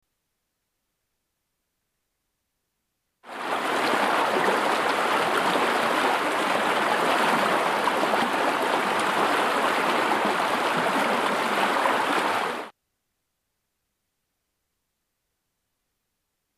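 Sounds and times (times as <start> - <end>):
creek water: 3.2 - 12.7.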